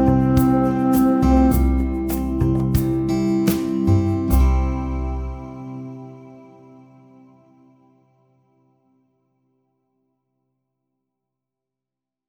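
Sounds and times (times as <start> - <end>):
backing music: 0.0 - 6.4.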